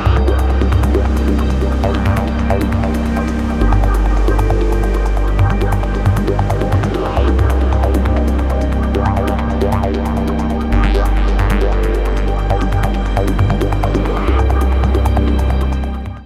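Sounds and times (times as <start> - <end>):
ambient flow dub music: 0.0 - 16.2.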